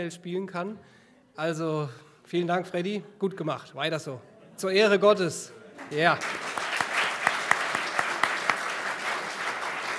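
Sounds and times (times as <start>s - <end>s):
speech: 0.0s - 6.6s
audience applause: 5.8s - 9.9s.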